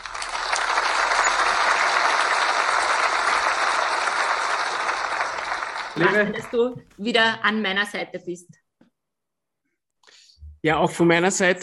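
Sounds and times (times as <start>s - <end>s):
applause: 0.0s - 6.9s
speech: 6.0s - 8.6s, 10.6s - 11.6s.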